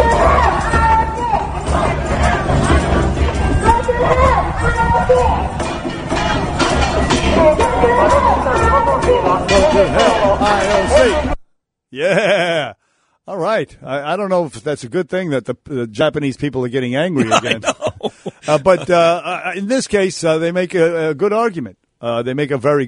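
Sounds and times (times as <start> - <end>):
large protest crowd marching through the streets, shouting and chattering: 0.0 - 2.4, 3.3 - 11.4
laughter: 12.0 - 12.7, 17.2 - 19.5
speech: 13.6 - 22.8.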